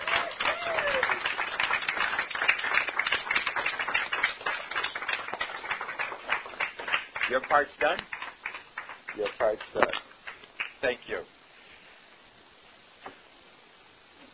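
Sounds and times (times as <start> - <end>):
audience applause: 0.0 - 10.8
speech: 7.3 - 8.1, 9.2 - 10.1, 10.8 - 11.4.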